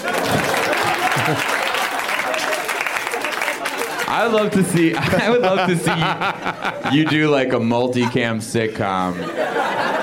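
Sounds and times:
clapping: 0.0 - 5.1
laughter: 0.0 - 10.0
speech: 1.3 - 1.5, 4.2 - 9.6.

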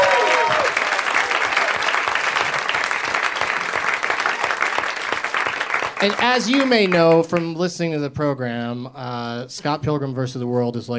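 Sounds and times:
brief cheer or whoop: 0.0 - 1.9
audience applause: 0.0 - 7.5
speech: 6.0 - 10.9.

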